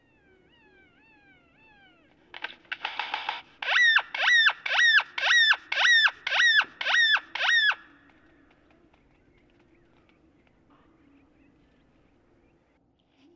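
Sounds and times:
faint low hum: 0:00.0 - 0:03.6, 0:05.5 - 0:13.3
great-tailed grackle calls: 0:00.0 - 0:10.6.

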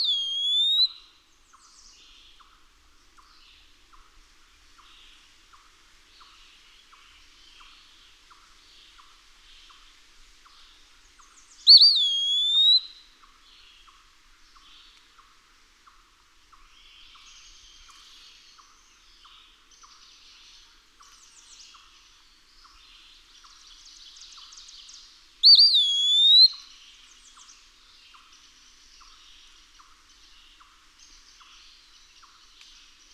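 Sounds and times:
Eastern wood-pewee calling: 0:00.0 - 0:01.0, 0:11.7 - 0:13.0, 0:25.4 - 0:26.7.

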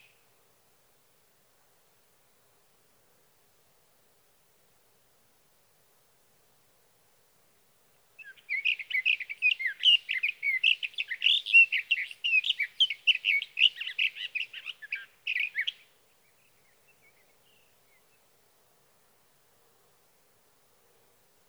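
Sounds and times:
sage thrasher warbling song: 0:08.2 - 0:18.2.

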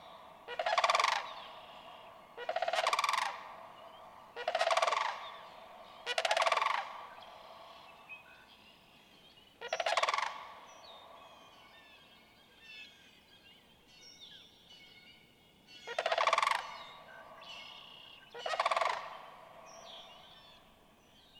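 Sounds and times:
sandhill crane calling: 0:00.0 - 0:08.5, 0:09.6 - 0:12.0, 0:15.8 - 0:20.5.

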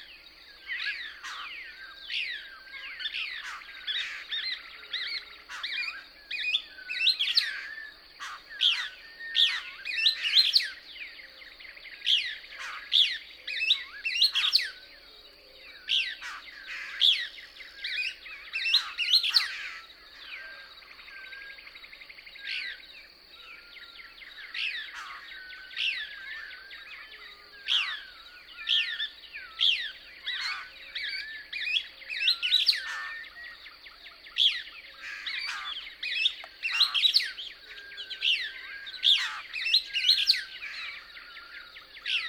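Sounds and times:
Couch's Kingbird twittering song: 0:00.0 - 0:42.2.

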